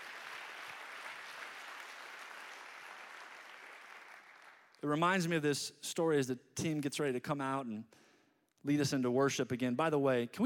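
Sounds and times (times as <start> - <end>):
audience clapping hands: 0.0 - 4.8
speech: 4.8 - 8.0, 8.6 - 10.4.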